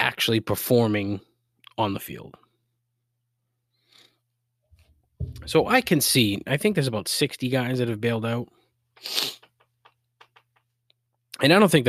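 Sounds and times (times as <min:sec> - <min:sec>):
speech: 0:00.2 - 0:02.4, 0:05.2 - 0:09.4, 0:11.4 - 0:11.8
big sniffle: 0:09.0 - 0:09.5.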